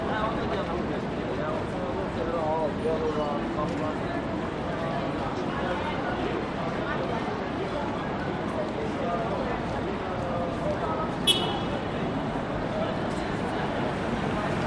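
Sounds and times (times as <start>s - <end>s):
people on a city street at night in Sydney: 0.0s - 14.6s
traffic passing close on George Street in Sydney at night: 10.8s - 14.6s.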